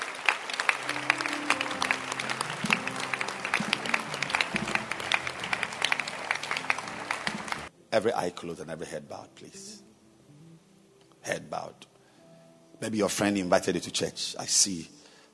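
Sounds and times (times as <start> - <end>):
crowd clapping hands: 0.0 - 7.7
speech: 8.0 - 9.9, 12.8 - 15.3.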